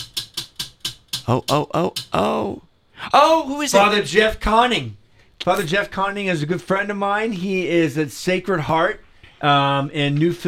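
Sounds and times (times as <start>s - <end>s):
spinning prize wheel clicking: 0.0s - 2.2s
speech: 1.3s - 10.4s.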